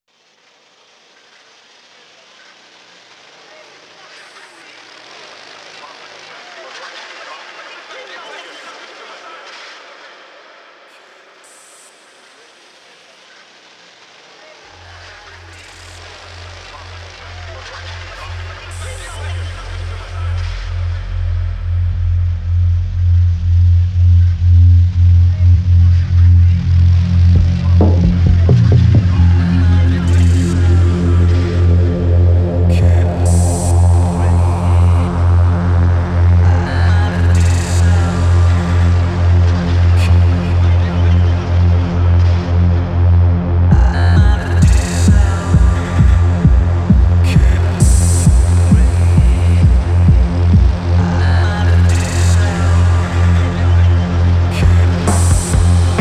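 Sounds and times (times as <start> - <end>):
dub music: 15.5 - 55.9.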